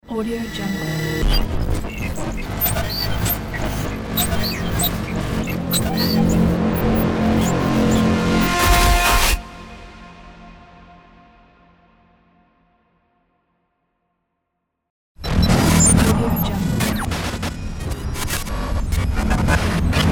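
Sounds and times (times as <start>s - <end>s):
cinematic glitches: 0.4s - 9.4s, 15.2s - 20.1s.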